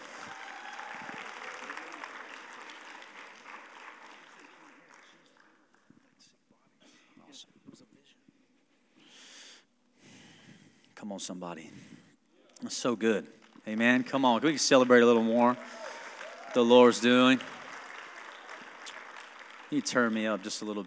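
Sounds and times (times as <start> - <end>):
audience clapping hands: 0.0 - 6.4, 12.6 - 20.8
speech: 11.0 - 11.9, 12.6 - 15.8, 16.5 - 17.6, 19.7 - 20.8.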